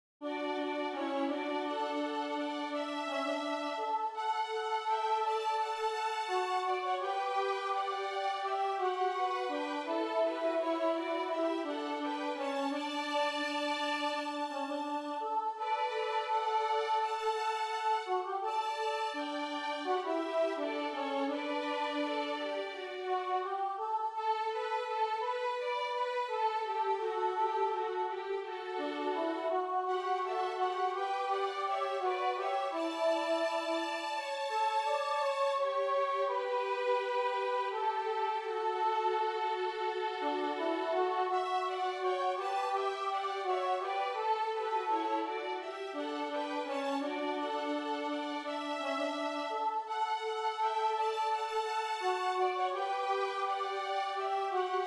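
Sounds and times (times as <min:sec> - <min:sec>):
violin: 0:00.2 - 0:54.8.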